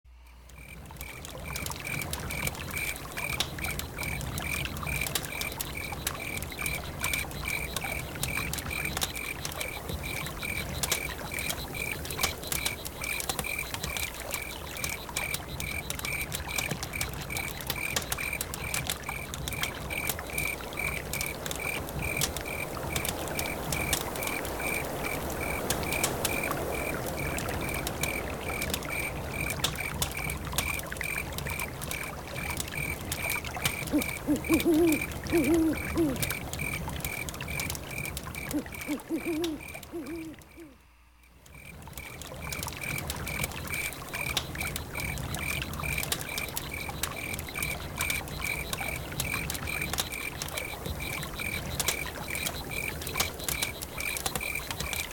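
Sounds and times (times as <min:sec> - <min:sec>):
crickets chirping: 0:00.3 - 0:55.1.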